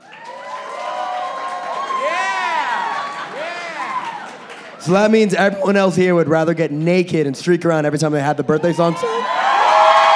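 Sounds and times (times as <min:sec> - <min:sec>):
audience clapping: 0:00.0 - 0:05.4, 0:09.6 - 0:10.1
audience cheering and whooping: 0:00.0 - 0:05.8, 0:08.6 - 0:10.1
speech: 0:04.8 - 0:09.3.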